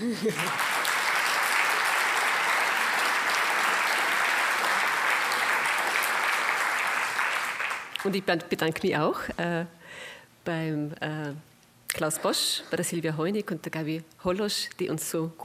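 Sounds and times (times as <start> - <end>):
speech: 0.0 - 0.8, 8.0 - 15.4
audience applause: 0.0 - 8.1.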